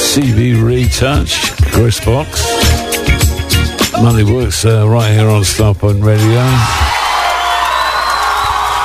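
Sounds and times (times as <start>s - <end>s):
speech: 0.2s - 3.1s, 4.0s - 7.0s
crowd cheering with whoops: 6.2s - 8.8s
applause: 7.0s - 8.8s.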